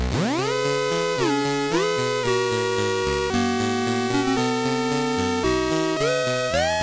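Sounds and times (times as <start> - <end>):
siren: 0.1 - 6.7.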